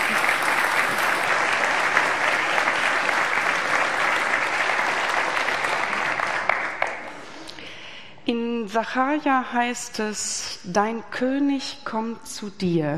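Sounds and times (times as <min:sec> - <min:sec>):
audience applause: 0:00.0 - 0:07.2
speech: 0:08.8 - 0:12.9.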